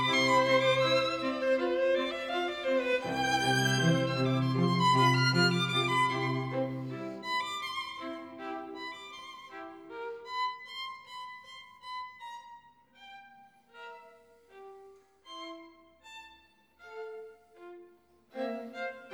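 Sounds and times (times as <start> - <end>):
string quartet playing andante con moto: 0.0 - 10.6, 16.9 - 19.1.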